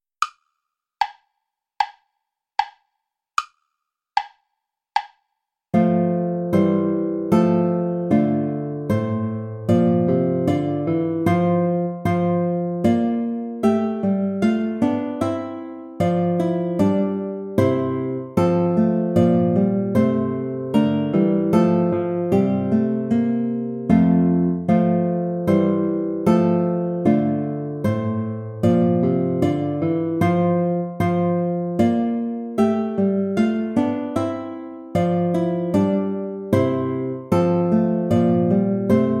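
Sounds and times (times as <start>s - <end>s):
play-along backing track without guitar: 5.0s - 39.1s.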